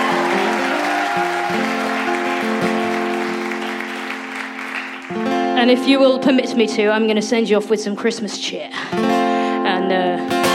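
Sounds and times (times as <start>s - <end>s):
audience round of applause: 0.0s - 5.4s
speech: 5.6s - 9.2s, 9.9s - 10.3s.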